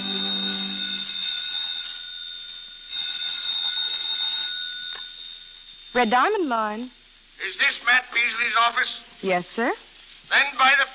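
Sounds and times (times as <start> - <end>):
telephone bell ringing: 0.0 - 6.1
speech: 6.0 - 10.9.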